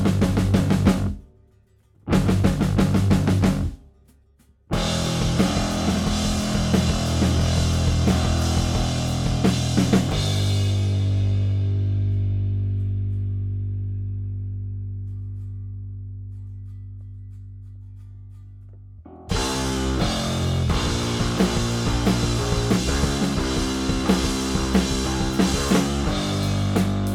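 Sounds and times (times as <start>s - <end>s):
drums: 0.0s - 1.3s, 2.1s - 3.8s, 4.7s - 12.7s, 19.3s - 27.1s
bass: 0.0s - 27.1s.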